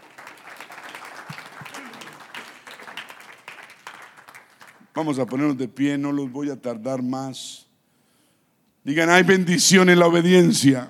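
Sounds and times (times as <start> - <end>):
audience applause: 0.0 - 5.1
speech: 5.0 - 7.6, 8.8 - 10.8.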